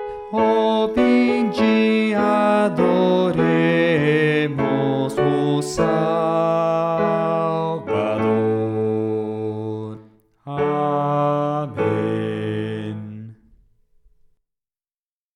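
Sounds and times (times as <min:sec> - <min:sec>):
bass playing a hymn: 0:00.1 - 0:13.5.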